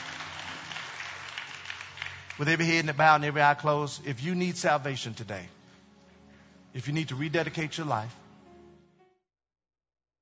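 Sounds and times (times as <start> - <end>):
audience clapping hands: 0.0 - 3.5
speech: 2.4 - 5.6, 6.8 - 8.2.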